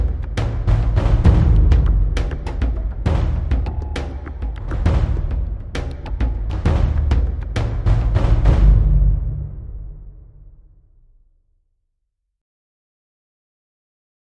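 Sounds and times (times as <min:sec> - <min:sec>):
deep tense cinematic drums: 0:00.0 - 0:11.1.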